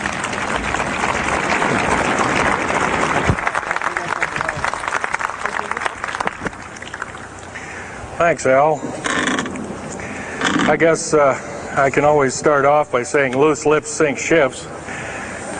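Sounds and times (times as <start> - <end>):
audience applause welcoming a speaker at a talk: 0.0 - 7.3
speech: 8.2 - 9.0, 10.7 - 14.8.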